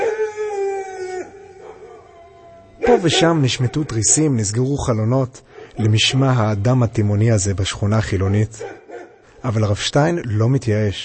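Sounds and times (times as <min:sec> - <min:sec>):
dog howling: 0:00.0 - 0:04.7, 0:05.8 - 0:09.1
speech: 0:02.9 - 0:08.8, 0:09.4 - 0:11.0.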